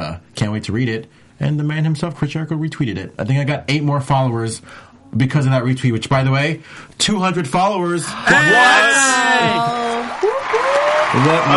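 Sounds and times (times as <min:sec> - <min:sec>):
speech: 0:00.1 - 0:09.9, 0:11.1 - 0:11.5
studio audience clapping politely: 0:09.6 - 0:11.5.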